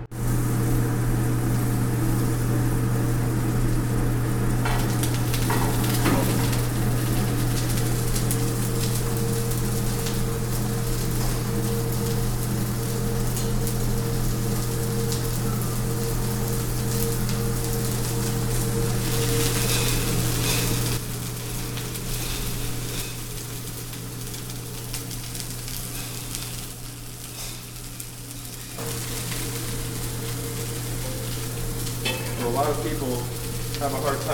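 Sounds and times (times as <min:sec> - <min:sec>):
morel mushrooms pan frying in a hot pan: 0:00.1 - 0:34.3.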